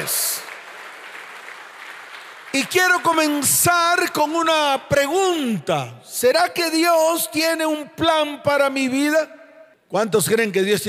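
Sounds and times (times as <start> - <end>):
audience applause: 0.0 - 3.6
speech: 2.6 - 10.8.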